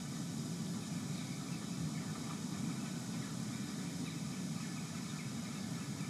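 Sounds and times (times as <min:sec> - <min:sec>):
outdoor ambience: 0:00.0 - 0:06.0.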